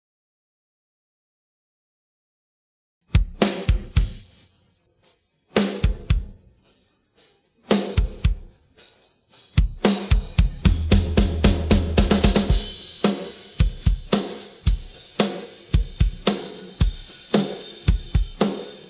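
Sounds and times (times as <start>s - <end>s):
drum pattern: 3.2s - 4.6s, 5.6s - 6.5s, 7.7s - 18.8s.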